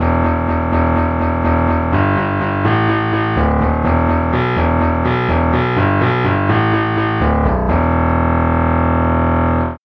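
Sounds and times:
baritone saxophone bass line: 0:00.0 - 0:09.8.

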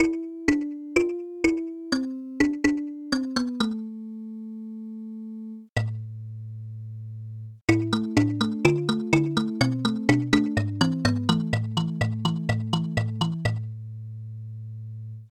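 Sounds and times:
kalimba: 0:00.0 - 0:03.8, 0:07.7 - 0:13.7.

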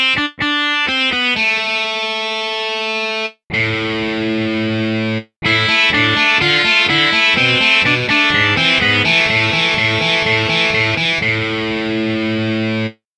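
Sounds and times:
overdrive guitar: 0:00.1 - 0:13.0.

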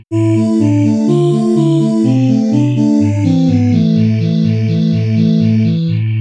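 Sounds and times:
space voice: 0:00.1 - 0:06.1.

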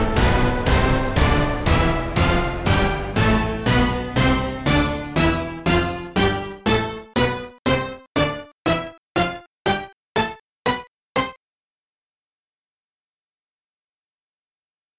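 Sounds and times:
orchestra hit scale: 0:00.2 - 0:11.4.

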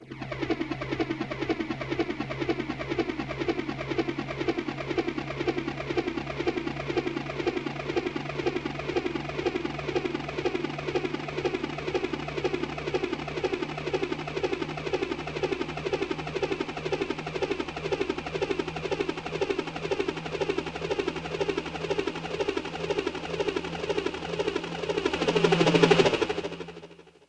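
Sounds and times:
helicopter: 0:00.0 - 0:27.2.

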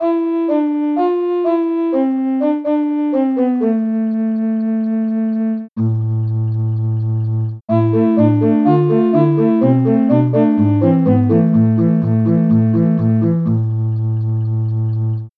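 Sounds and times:
recorder: 0:00.0 - 0:15.2.

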